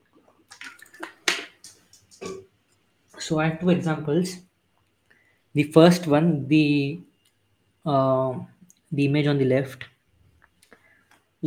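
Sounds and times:
person gulping water: 0.0 - 2.5
speech: 3.3 - 4.5, 5.6 - 7.1, 7.8 - 9.9.

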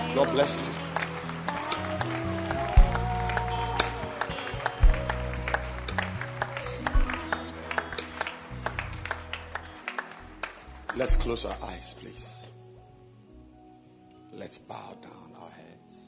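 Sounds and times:
live music with a low bass line and sustained tones: 0.0 - 11.6
crowd clapping along: 0.0 - 11.8
speech: 0.2 - 0.9, 11.0 - 12.3.

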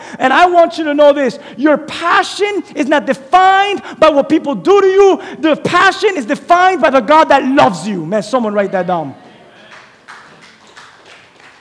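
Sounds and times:
speech: 0.2 - 9.2
a few weak audience claps: 9.6 - 11.5.

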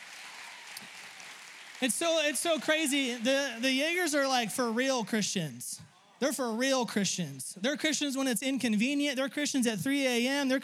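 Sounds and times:
audience applauding: 0.0 - 5.3
speech: 1.8 - 10.6.

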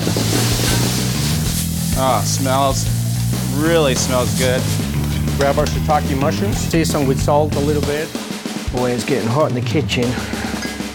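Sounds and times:
meat frying in olive oil in a hot pan: 0.0 - 8.7
speech: 2.0 - 3.0, 3.6 - 10.4.

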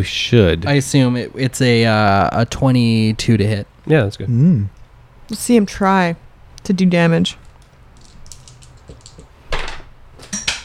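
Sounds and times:
speech: 0.0 - 7.4
dice dropping on the floor: 7.4 - 9.3.

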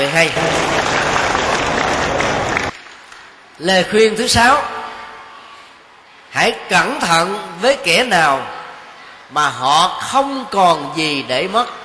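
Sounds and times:
speech: 0.1 - 1.0, 3.6 - 4.8, 6.4 - 8.6, 9.3 - 11.8
audience applause: 0.1 - 3.0.

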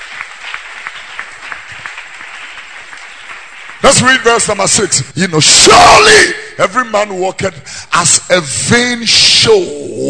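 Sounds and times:
crowd clapping: 0.0 - 5.2
speech: 3.9 - 10.0.

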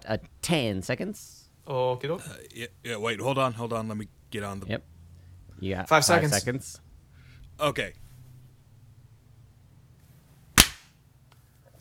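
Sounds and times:
speech: 0.1 - 4.9, 5.6 - 6.8, 7.6 - 8.0
group clapping hands together once: 10.6 - 10.8.

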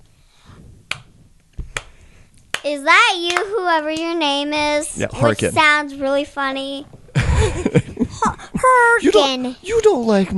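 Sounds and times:
sarcastic slow hand claps: 0.9 - 4.1
speech: 2.6 - 7.0, 7.6 - 10.3.

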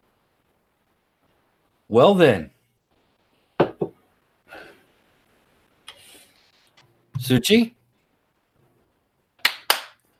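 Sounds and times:
speech: 1.9 - 2.5, 7.3 - 7.8
hand clap: 9.4 - 10.0.

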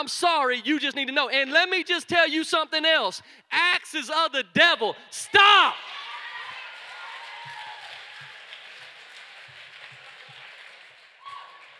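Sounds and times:
speech: 0.0 - 6.1
audience applause: 5.8 - 11.7.

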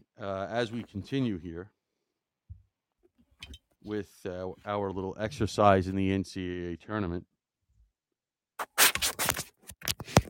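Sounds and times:
speech: 0.2 - 1.8, 3.5 - 7.3
shuffling papers: 8.6 - 10.2.

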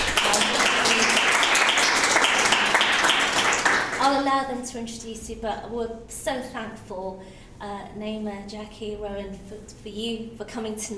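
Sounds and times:
audience round of applause: 0.0 - 4.0
speech: 4.4 - 10.9.

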